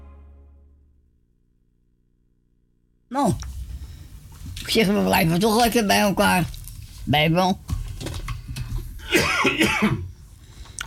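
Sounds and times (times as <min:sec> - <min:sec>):
speech: 0:03.1 - 0:03.5, 0:04.7 - 0:07.7, 0:09.6 - 0:10.1
person coughing: 0:09.0 - 0:10.1.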